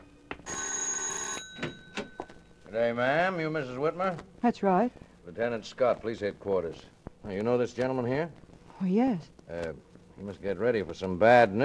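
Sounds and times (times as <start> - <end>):
doorbell ringing: 0.0 - 2.5
speech: 2.7 - 11.6.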